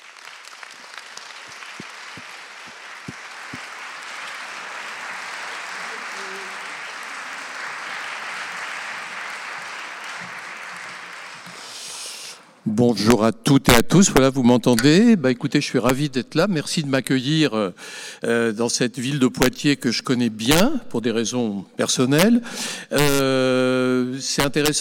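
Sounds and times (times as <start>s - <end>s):
audience applause: 0.0s - 12.3s
speech: 12.7s - 24.7s.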